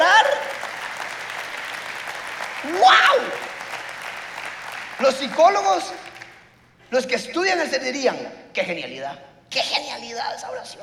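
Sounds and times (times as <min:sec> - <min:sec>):
audience applause: 0:00.0 - 0:06.5
speech: 0:05.0 - 0:06.1, 0:06.9 - 0:10.8.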